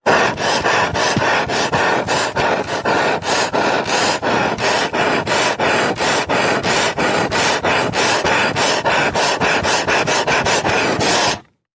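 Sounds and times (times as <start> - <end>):
frantic sawing: 0.0 - 11.6.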